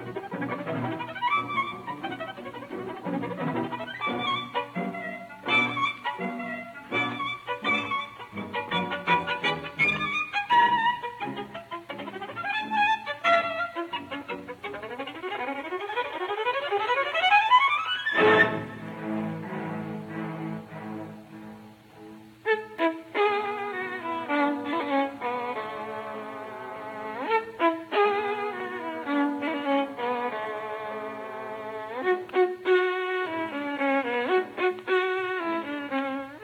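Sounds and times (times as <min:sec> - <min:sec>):
live violin concerto finale with solo violin: 0:00.0 - 0:36.4.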